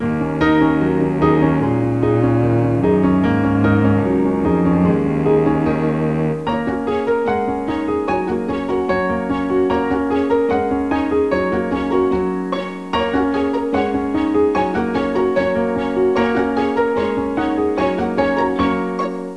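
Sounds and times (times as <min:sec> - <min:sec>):
piano: 0:00.0 - 0:19.3.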